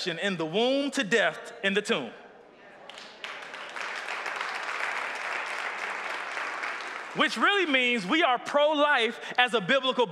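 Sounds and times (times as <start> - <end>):
speech: 0.0 - 2.2, 7.2 - 10.1
audience clapping: 2.8 - 8.0.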